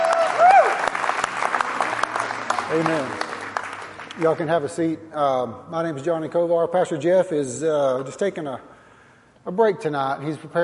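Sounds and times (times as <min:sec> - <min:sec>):
rising whoop: 0:00.0 - 0:00.9
audience applause: 0:00.0 - 0:04.5
speech: 0:02.7 - 0:03.2, 0:04.2 - 0:08.7, 0:09.4 - 0:10.6.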